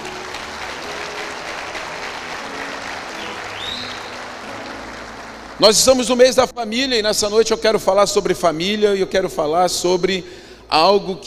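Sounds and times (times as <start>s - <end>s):
audience applause: 0.0s - 6.4s
speech: 5.6s - 11.2s.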